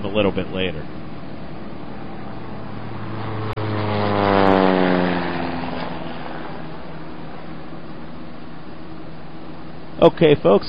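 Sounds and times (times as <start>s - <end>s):
propeller plane flying overhead: 0.0s - 10.6s
speech: 0.1s - 1.0s, 10.0s - 10.6s.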